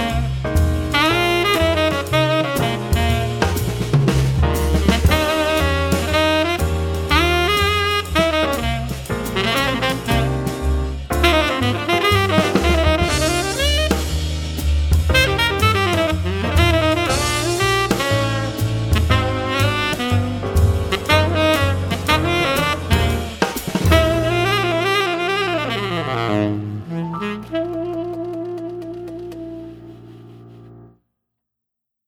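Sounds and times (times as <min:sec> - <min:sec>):
tenor jazz music: 0:00.0 - 0:30.9.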